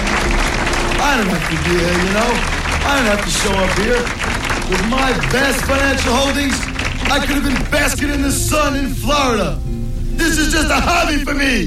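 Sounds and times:
audience applause: 0.0 - 8.4
speech: 1.2 - 11.6.

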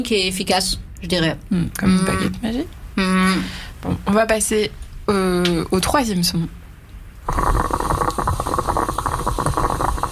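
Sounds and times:
speech: 0.0 - 6.6, 7.3 - 7.9
moka pot gurgling and hissing as coffee brews: 7.2 - 10.1.

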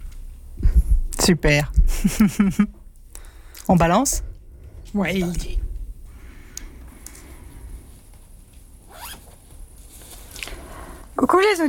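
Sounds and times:
speech: 1.3 - 2.8, 3.7 - 4.3, 4.9 - 5.6, 11.4 - 11.6
zipper while setting up a camping bivouac: 8.9 - 9.3.

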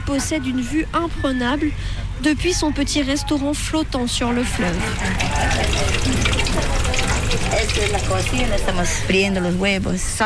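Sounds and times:
speech: 0.1 - 6.8, 7.5 - 10.2
eggs frying in a pan: 4.6 - 9.2.

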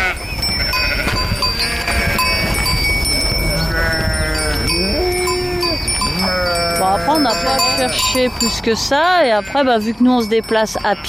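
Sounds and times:
flock of sheep bleating: 0.0 - 2.5, 3.5 - 8.2, 9.0 - 9.9
sheep bells clanking and ringing: 0.0 - 11.0
speech: 7.8 - 11.0.

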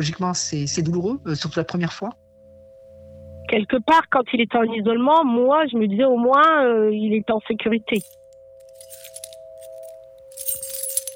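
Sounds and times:
speech: 0.0 - 2.2, 3.5 - 8.2
keys jangling: 8.0 - 11.1.

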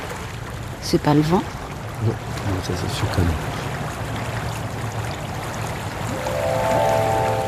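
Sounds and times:
speech: 0.8 - 3.7
river current rushing water: 2.2 - 7.4.

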